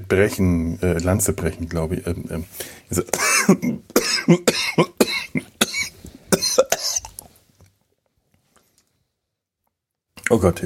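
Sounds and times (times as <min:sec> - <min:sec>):
speech: 0:00.1 - 0:05.4, 0:10.3 - 0:10.6
coughing fit: 0:03.0 - 0:07.2.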